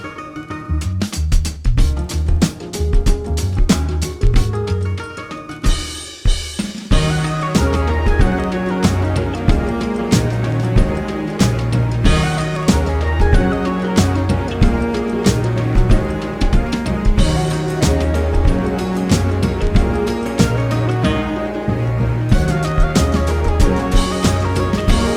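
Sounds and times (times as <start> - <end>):
country-sounding music: 0.0 - 25.1
Asian sound effects: 6.9 - 25.1.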